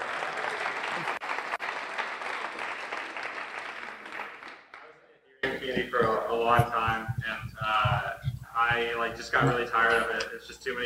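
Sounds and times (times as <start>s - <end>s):
audience applause: 0.0s - 8.1s
speech: 5.6s - 8.0s, 8.6s - 10.8s.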